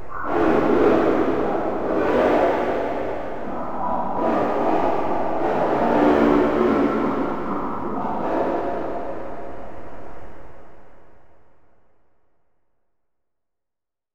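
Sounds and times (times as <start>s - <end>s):
noise: 0.0s - 10.8s.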